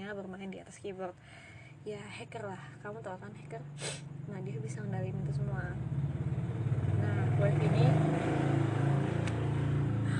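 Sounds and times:
speech: 0.1 - 6.3, 7.0 - 8.4
motorcycle engine passing by: 3.6 - 10.1.

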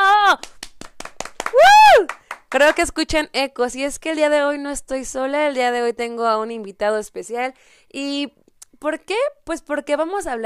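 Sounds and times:
scattered hand claps: 0.4 - 2.9
loud drawn-out cheering whoops: 1.5 - 2.1
speech: 2.6 - 10.4.

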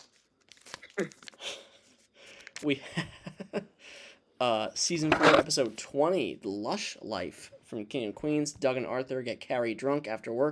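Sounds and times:
paper being unfolded: 0.0 - 1.4
speech: 1.0 - 1.2, 2.6 - 3.7, 4.4 - 10.5.

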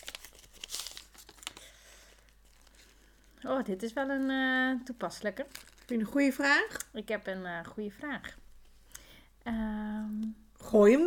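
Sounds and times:
mint tea bag wrapper crinkling and tearing: 0.0 - 7.0
speech: 3.4 - 8.4, 9.5 - 9.8, 10.7 - 11.0.

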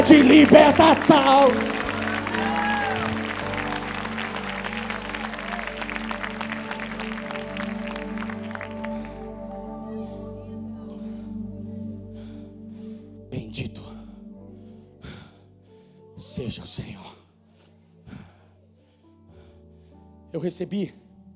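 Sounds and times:
audience applause: 0.0 - 9.4
speech: 0.1 - 1.8, 20.4 - 21.0.

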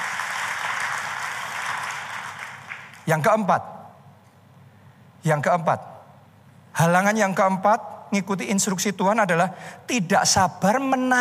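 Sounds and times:
crowd applause: 0.0 - 3.0
speech: 3.1 - 3.7, 5.2 - 5.9, 6.8 - 11.1.

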